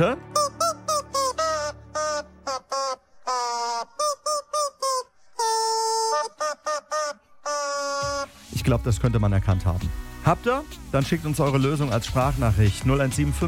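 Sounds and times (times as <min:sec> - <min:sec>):
speech: 0:00.0 - 0:00.3, 0:08.7 - 0:13.4
squeaky chicken dog toy squeaking a melody: 0:00.2 - 0:08.3.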